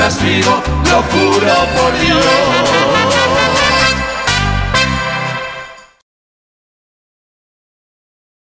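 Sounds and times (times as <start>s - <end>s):
corrido music: 0.0s - 6.0s.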